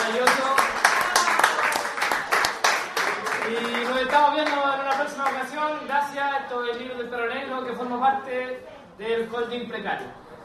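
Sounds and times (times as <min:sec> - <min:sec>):
audience applause for the author at a book launch: 0:00.0 - 0:05.4
speech: 0:06.0 - 0:10.2.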